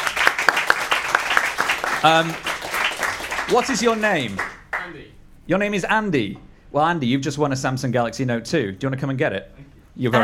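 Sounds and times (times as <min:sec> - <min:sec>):
audience applause: 0:00.0 - 0:05.0
speech: 0:02.0 - 0:02.5, 0:03.5 - 0:10.2.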